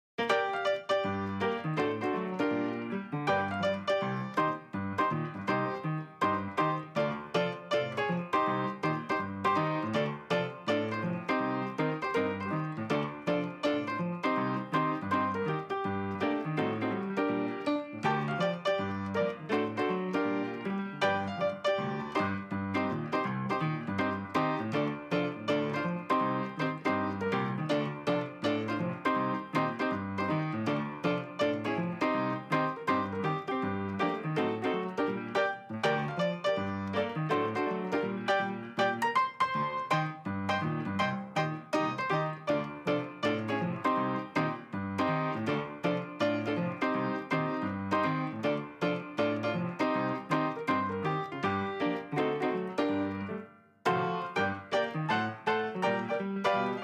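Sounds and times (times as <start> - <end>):
saloon piano: 0.2 - 56.8.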